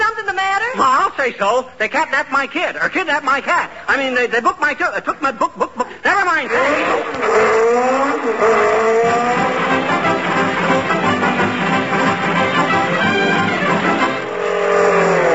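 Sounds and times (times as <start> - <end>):
speech: 0.8 - 9.4
jeep tires squealing: 6.5 - 15.3
jeep driving past: 6.6 - 12.3, 13.7 - 15.3.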